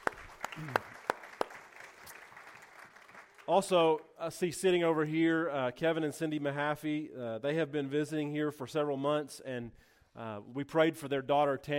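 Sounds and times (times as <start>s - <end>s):
isolated claps: 0.0s - 3.5s
speech: 0.6s - 0.8s, 3.5s - 11.7s.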